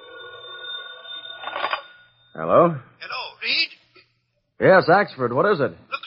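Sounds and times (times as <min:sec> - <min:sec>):
telephone bell ringing: 0:00.0 - 0:03.4
speech: 0:02.4 - 0:03.7, 0:04.6 - 0:05.9.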